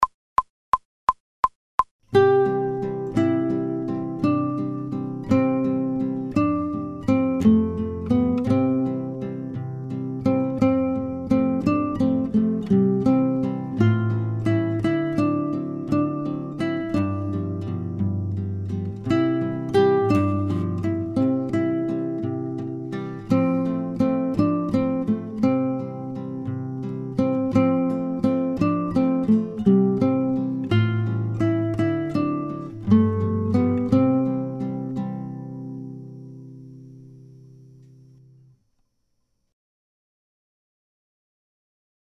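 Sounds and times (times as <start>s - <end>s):
fast guitar playing without metronome: 2.2s - 35.7s.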